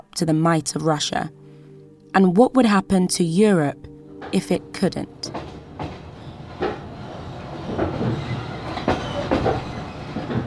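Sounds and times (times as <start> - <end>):
speech: 0.2 - 1.4, 2.1 - 5.4
train moving on rails: 4.2 - 10.4.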